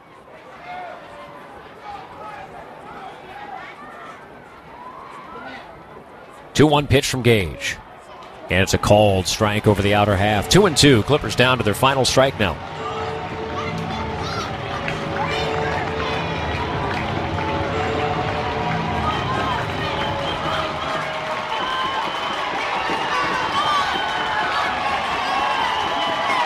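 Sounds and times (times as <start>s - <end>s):
baseball stadium crowd cheering: 0.0s - 26.4s
speech: 6.6s - 7.8s, 8.5s - 12.7s
scattered clapping: 8.2s - 26.4s.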